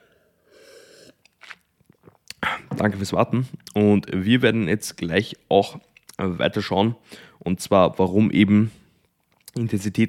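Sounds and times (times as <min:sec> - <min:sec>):
person taking a small sip of a drink: 0:00.0 - 0:02.8
speech: 0:02.8 - 0:08.8, 0:09.6 - 0:10.0.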